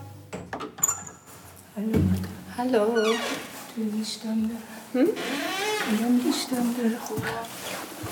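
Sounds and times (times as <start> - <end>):
door being unlocked and pulled open: 0.3 - 1.3
speech: 1.8 - 7.7.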